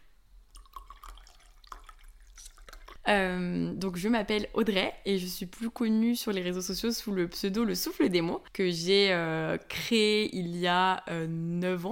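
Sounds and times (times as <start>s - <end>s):
tea poured into a cup: 0.5s - 3.0s
speech: 3.1s - 11.8s.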